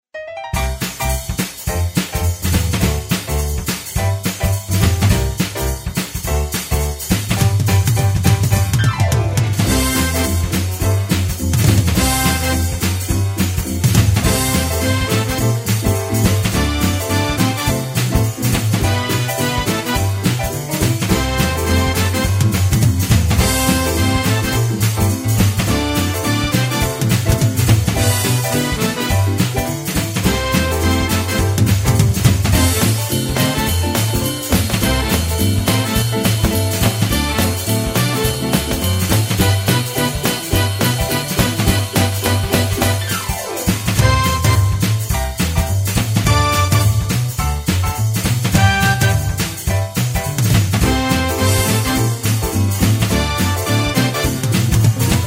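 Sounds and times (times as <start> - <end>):
closing boogie instrumental music: 0.0 - 55.2.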